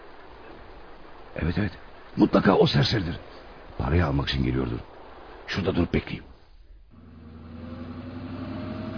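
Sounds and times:
speech: 1.4 - 4.9, 5.5 - 6.3
car engine humming as the vehicle nears: 6.9 - 8.9.

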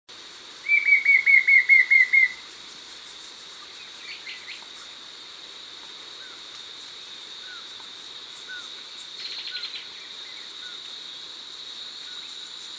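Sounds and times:
White-shouldered fire-eye Pyriglena leucoptera singing whistled notes: 0.7 - 2.4.

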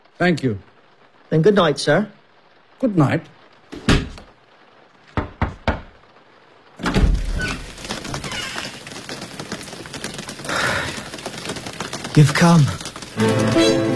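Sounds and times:
speech: 0.2 - 0.7, 1.3 - 2.2, 2.8 - 3.8, 12.2 - 13.8
door thumping shut: 3.7 - 4.3, 5.2 - 6.0, 6.8 - 8.2.

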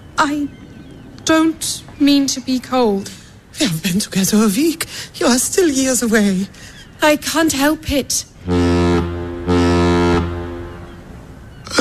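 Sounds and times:
speech: 0.2 - 0.6, 1.3 - 8.6
deep ship horn blowing before the boat's departure: 8.4 - 11.4.

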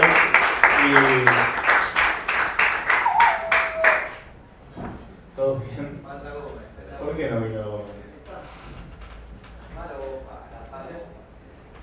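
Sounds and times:
audience applause: 0.0 - 4.3.

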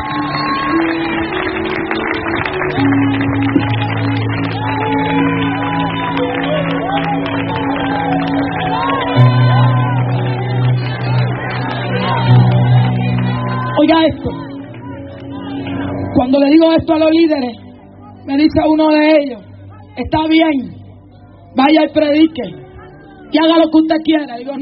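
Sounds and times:
audience clapping and cheering: 0.0 - 16.6
sustained low musical chords: 0.0 - 24.5
speech: 16.8 - 17.6, 18.4 - 20.7, 21.5 - 22.6, 23.3 - 24.5.

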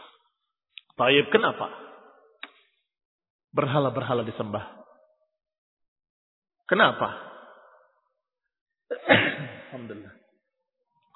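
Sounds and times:
speech: 1.0 - 1.8, 3.6 - 4.8, 6.7 - 7.3, 9.1 - 10.2
person sneezing: 8.9 - 9.8.

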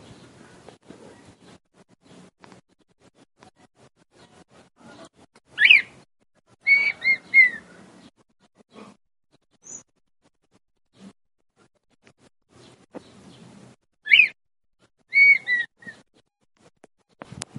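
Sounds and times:
male red-winged tinamou singing to the female: 5.6 - 6.0, 6.6 - 7.8, 9.6 - 9.9, 14.0 - 14.4, 15.1 - 16.0.

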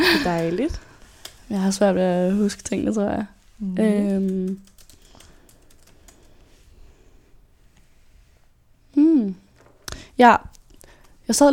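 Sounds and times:
speech: 0.2 - 0.9, 1.5 - 4.7, 9.2 - 9.4, 10.2 - 10.6, 11.3 - 11.5
typing notes on a computer keyboard: 4.0 - 6.4.

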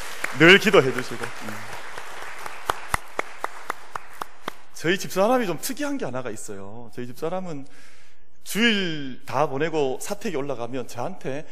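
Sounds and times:
audience applause: 0.0 - 4.6
speech: 0.4 - 1.9, 4.8 - 11.5.

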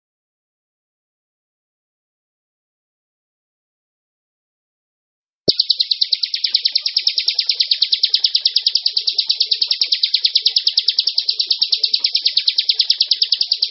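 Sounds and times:
bar-winged prinia giving a high rattling trill: 5.5 - 13.6.

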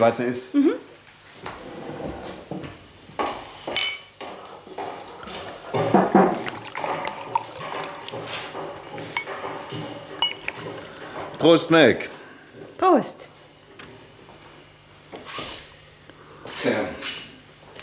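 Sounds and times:
speech: 0.0 - 0.7, 11.4 - 12.2, 12.9 - 13.3
glasses clinking: 3.8 - 4.1, 9.1 - 9.5, 10.2 - 10.6
liquid gurgling: 5.3 - 9.2
whisky poured into glasses: 6.0 - 8.5.

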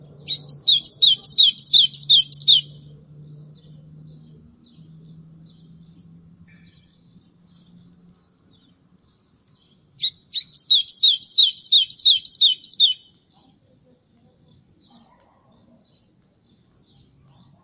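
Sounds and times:
White-throated seedeater singing rapid downslurred whistled notes: 0.3 - 2.8, 10.0 - 13.1.

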